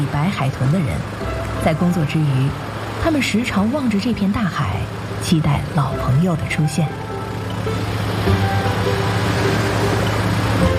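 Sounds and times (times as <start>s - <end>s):
fishing boat motor running: 0.0s - 10.7s
speech: 0.3s - 7.1s.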